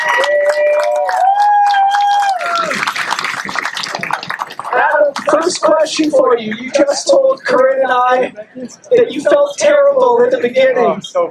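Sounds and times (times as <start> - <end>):
crowd applause for race winner: 0.0 - 6.2
speech: 5.9 - 11.2.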